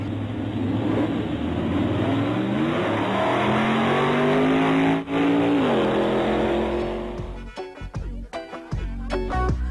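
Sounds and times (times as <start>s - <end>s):
Hummer engine revving: 0.0s - 7.4s
thumping beat-driven music track: 6.4s - 9.6s.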